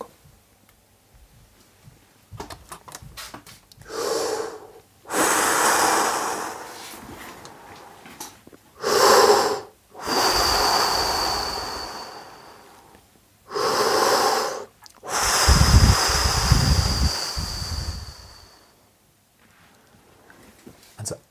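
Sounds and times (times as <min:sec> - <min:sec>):
active abdominal diaphragmatic breathing exhalations: 0:03.8 - 0:18.8.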